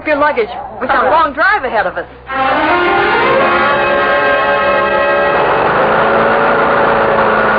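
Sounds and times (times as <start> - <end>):
speech: 0.1 - 2.9
small engine running: 2.3 - 7.5.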